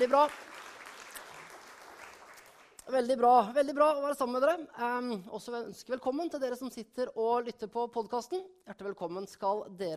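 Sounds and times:
speech: 0:00.0 - 0:00.5, 0:02.9 - 0:09.9
audience applause: 0:00.0 - 0:02.7.

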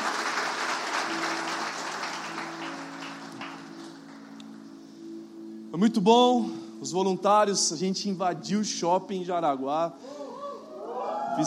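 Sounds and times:
audience applause: 0:00.0 - 0:04.3
speech: 0:05.7 - 0:10.2.

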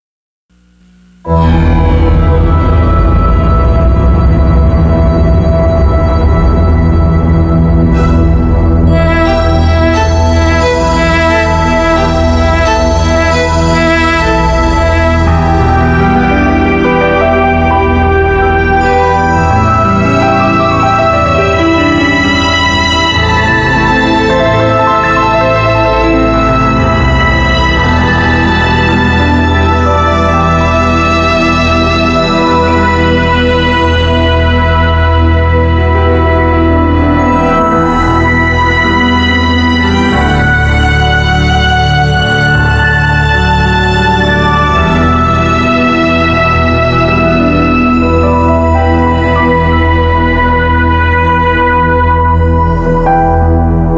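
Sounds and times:
synth instrumental: 0:00.6 - 0:53.9.

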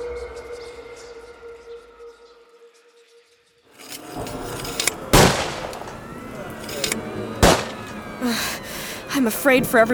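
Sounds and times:
musket gunfire: 0:03.8 - 0:07.9
speech: 0:09.2 - 0:09.9.

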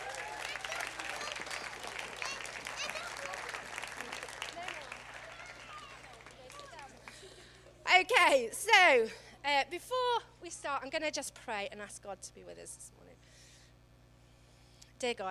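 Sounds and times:
audience applause: 0:00.0 - 0:07.5
speech: 0:08.0 - 0:13.0, 0:15.0 - 0:15.2.

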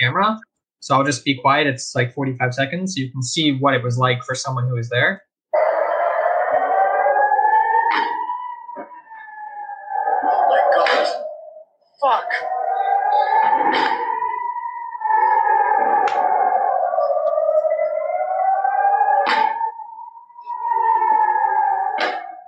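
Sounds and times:
speech: 0:00.0 - 0:05.6
air-raid siren wailing: 0:05.5 - 0:22.4.

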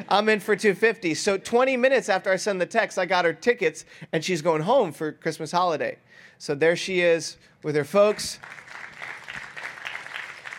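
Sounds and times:
speech: 0:00.0 - 0:08.6
people clapping: 0:08.0 - 0:10.5.

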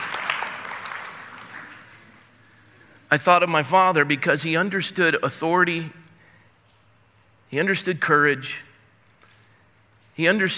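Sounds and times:
audience clapping: 0:00.0 - 0:02.4
speech: 0:03.1 - 0:06.0, 0:07.5 - 0:08.7, 0:10.2 - 0:10.5.

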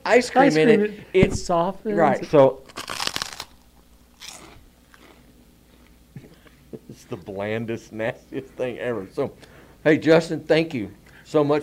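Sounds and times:
speech: 0:00.1 - 0:03.0, 0:07.1 - 0:11.6
biting and crunching an empty ice cream cone: 0:02.6 - 0:05.9.

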